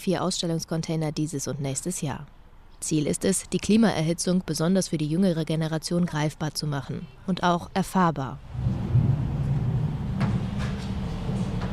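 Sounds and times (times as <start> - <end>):
speech: 0.0 - 8.9
heavy rain sound effect: 8.4 - 11.7
thunderstorm sound effect: 8.4 - 11.7.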